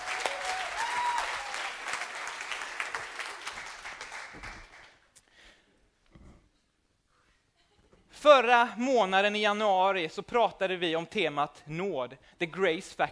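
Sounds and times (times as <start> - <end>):
audience applause: 0.0 - 5.0
speech: 8.2 - 13.0.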